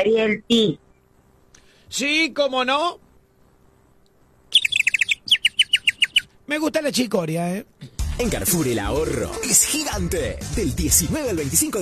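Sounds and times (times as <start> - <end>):
speech: 0.0 - 0.8, 1.9 - 3.0, 6.5 - 11.8
person imitating a bird chirping: 4.6 - 6.3.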